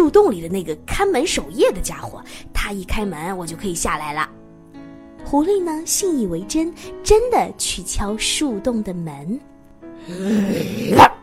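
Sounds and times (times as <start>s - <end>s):
speech: 0.0s - 4.4s, 5.2s - 11.2s
dog growling low: 10.2s - 11.2s
dog single loud sharp bark: 10.8s - 11.2s.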